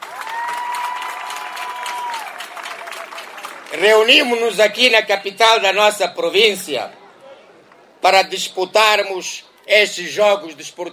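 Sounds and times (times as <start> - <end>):
audience applause: 0.0 - 4.0
speech: 3.7 - 7.0, 8.0 - 10.9.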